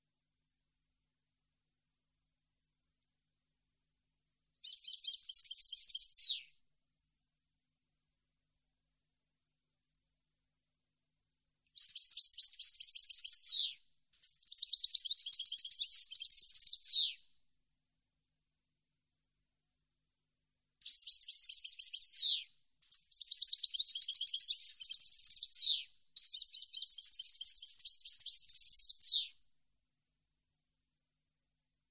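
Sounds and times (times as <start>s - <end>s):
European goldfinch singing tinkling twittering phrases: 4.6s - 6.4s, 11.8s - 17.2s, 20.8s - 29.3s.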